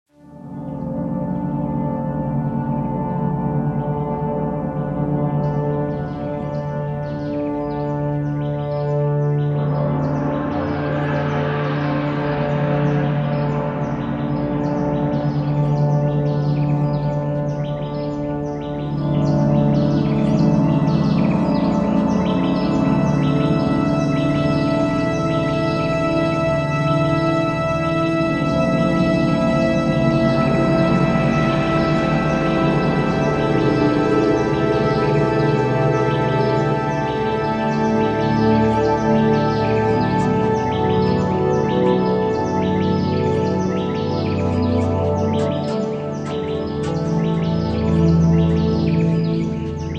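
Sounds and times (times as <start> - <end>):
ambient music: 0.1 - 49.9
nature sounds: 0.1 - 49.9.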